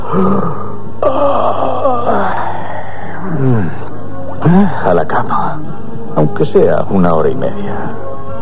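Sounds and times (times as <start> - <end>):
person yawning while stretching arms: 0.0 - 3.9
speech: 0.1 - 1.7, 4.5 - 8.1.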